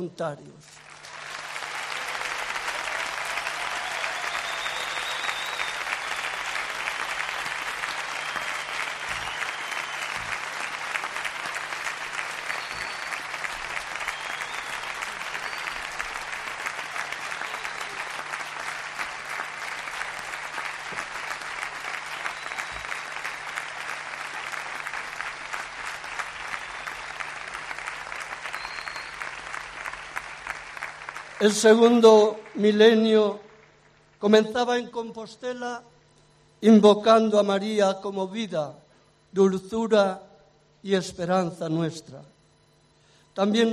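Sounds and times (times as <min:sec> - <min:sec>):
speech: 0:00.0 - 0:00.9, 0:31.4 - 0:33.4, 0:34.2 - 0:35.9, 0:36.6 - 0:42.4, 0:43.4 - 0:43.7
audience applause: 0:00.8 - 0:32.7.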